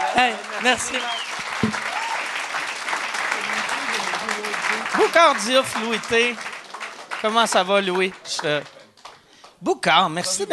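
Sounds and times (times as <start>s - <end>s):
audience applauding: 0.0s - 9.6s
speech: 0.2s - 1.9s, 5.0s - 6.5s, 7.2s - 8.8s, 9.6s - 10.5s.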